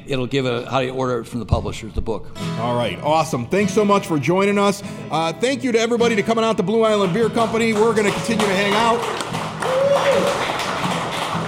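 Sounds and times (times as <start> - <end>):
speech: 0.1 - 9.4
audience applause at live event: 7.6 - 11.4.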